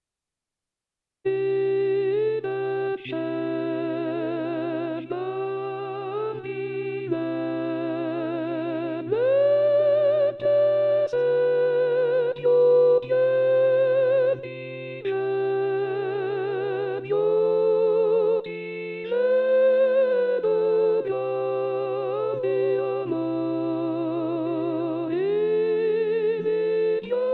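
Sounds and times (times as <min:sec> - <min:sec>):
sopranos singing: 0:01.3 - 0:27.3.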